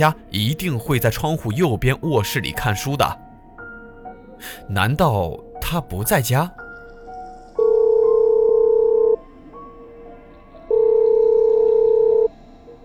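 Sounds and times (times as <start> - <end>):
speech: 0.0 - 3.2, 4.4 - 6.6
phone ringback tones: 7.6 - 9.2, 10.7 - 12.3.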